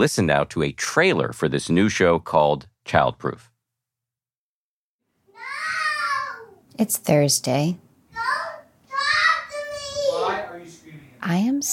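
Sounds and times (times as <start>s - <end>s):
speech: 0.0s - 3.5s, 6.8s - 7.8s, 11.2s - 11.7s
children yelling in the background: 5.3s - 6.6s, 8.1s - 10.7s.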